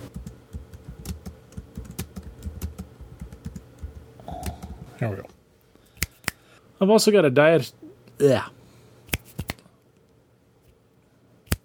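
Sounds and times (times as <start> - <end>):
speech: 5.0 - 5.4, 6.8 - 8.6
finger snapping: 6.0 - 6.4, 9.1 - 9.6, 11.5 - 11.6.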